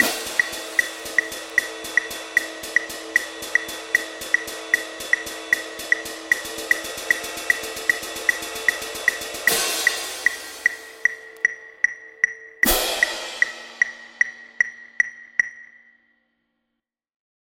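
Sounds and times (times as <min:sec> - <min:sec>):
double cymbal sequence: 0:00.0 - 0:11.4, 0:12.6 - 0:15.0.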